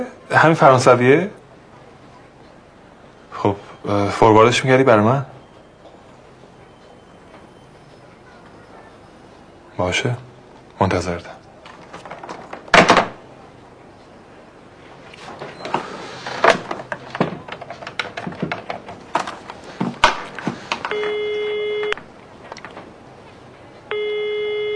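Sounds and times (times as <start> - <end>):
speech: 0.0 - 1.4, 3.4 - 5.4, 9.8 - 11.4
knocks and clatters: 11.7 - 13.2, 16.4 - 20.9
telephone ringing with steady electronic tone bursts: 20.9 - 22.0, 23.9 - 24.7.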